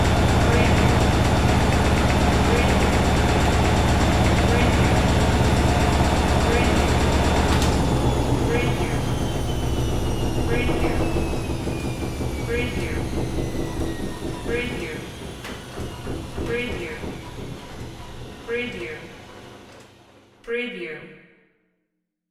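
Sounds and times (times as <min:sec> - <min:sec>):
washing machine: 0:00.0 - 0:20.4.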